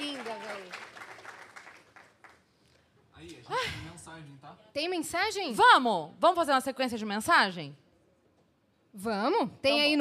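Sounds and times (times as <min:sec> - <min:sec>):
audience applause: 0:00.0 - 0:02.4
speech: 0:03.6 - 0:07.8, 0:09.0 - 0:10.0.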